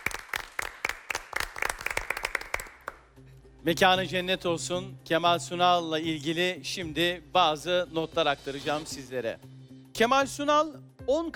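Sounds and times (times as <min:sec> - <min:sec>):
applause for a great actor at a quiz show: 0:00.0 - 0:03.1
speech: 0:03.6 - 0:11.3.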